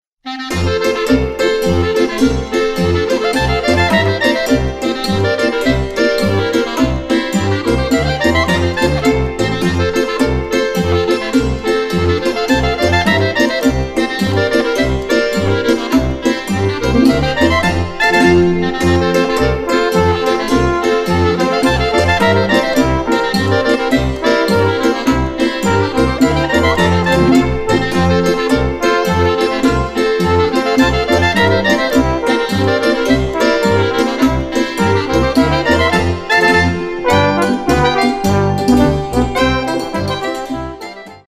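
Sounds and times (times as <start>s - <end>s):
polka music: 0.3s - 41.3s.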